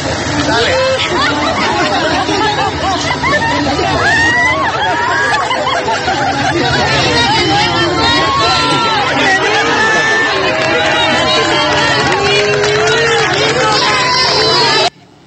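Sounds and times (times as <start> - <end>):
large crowd applauding: 0.0 - 14.9
people laughing: 0.0 - 14.9.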